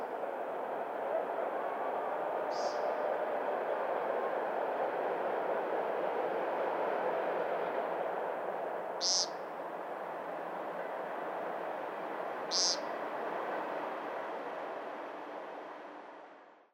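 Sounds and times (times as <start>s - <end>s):
coyotes: 0.0s - 4.6s, 8.9s - 9.7s, 11.9s - 13.2s
train: 0.0s - 16.7s
upland chorus frogs: 9.0s - 9.5s, 12.4s - 13.0s.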